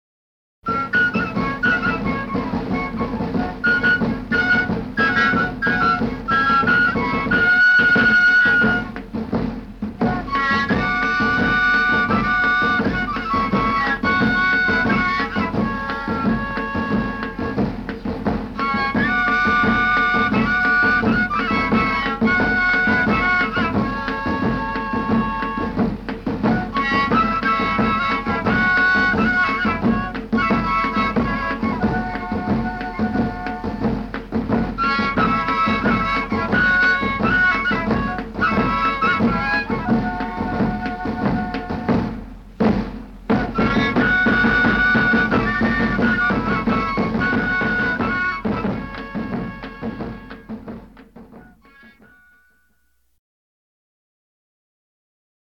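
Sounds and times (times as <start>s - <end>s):
panpipes: 0.7s - 42.7s, 43.3s - 53.0s
drum: 0.7s - 52.4s.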